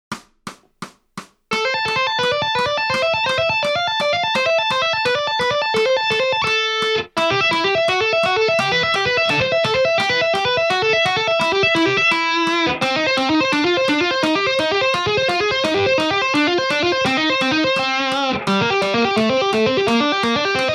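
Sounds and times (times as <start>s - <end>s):
musical lick: 1.5s - 20.7s.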